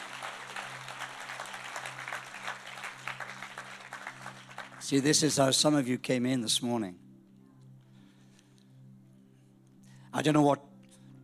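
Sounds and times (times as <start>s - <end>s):
audience clapping: 0.0s - 5.4s
speech: 4.9s - 7.0s, 10.2s - 10.7s.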